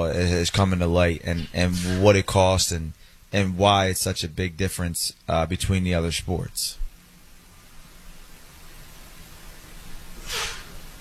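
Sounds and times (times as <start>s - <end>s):
speech: 0.0s - 6.8s
quiet hiss: 0.0s - 10.9s
sneeze from allergies: 10.2s - 10.8s.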